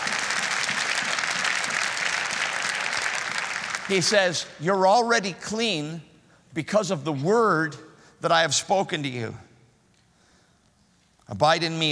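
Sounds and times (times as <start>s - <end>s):
audience clapping: 0.0s - 4.3s
speech: 3.9s - 9.5s, 11.3s - 11.8s.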